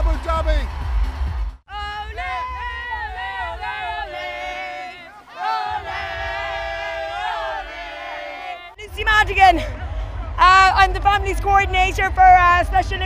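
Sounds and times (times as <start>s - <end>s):
huge arena crowd roaring and cheering: 0.0s - 13.0s
speech: 9.2s - 9.8s, 10.6s - 13.0s.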